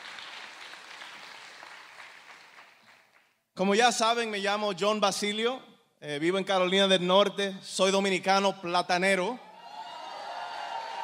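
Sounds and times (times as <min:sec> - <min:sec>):
audience applause: 0:00.0 - 0:03.3, 0:10.0 - 0:11.0
speech: 0:03.6 - 0:09.4.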